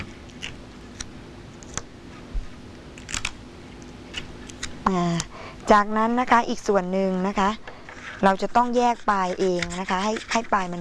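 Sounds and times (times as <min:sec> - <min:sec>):
scissors snipping: 0:03.0 - 0:05.3
speech: 0:04.8 - 0:10.7.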